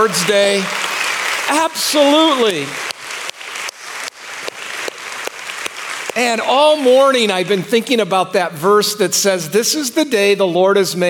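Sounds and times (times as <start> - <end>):
speech: 0.0 - 0.8, 1.5 - 2.9, 6.2 - 11.0
audience hand clapping: 0.0 - 7.8.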